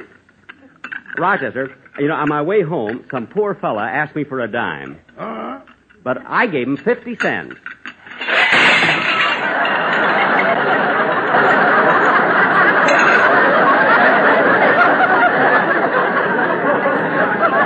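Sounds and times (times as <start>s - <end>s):
speech: 1.2s - 5.3s, 6.0s - 7.8s
stacks of dishes falling and shattering: 6.8s - 11.0s, 12.7s - 13.6s
laughter: 8.3s - 17.6s.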